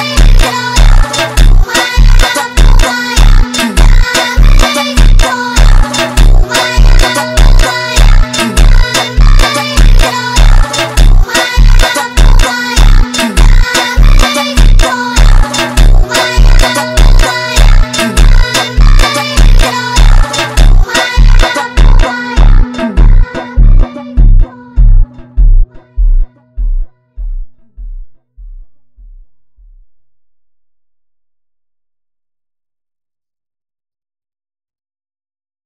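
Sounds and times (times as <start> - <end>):
phonk funk beat: 0.0 - 28.2.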